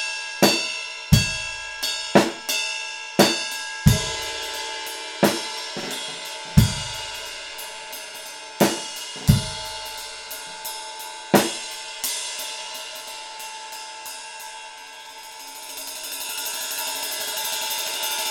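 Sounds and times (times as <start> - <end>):
ride cymbal ping: 0.0 - 18.3.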